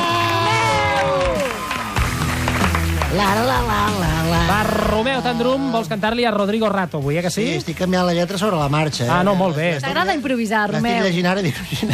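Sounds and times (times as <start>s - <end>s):
audience applause and cheering: 0.0s - 5.9s
speech: 3.2s - 11.9s.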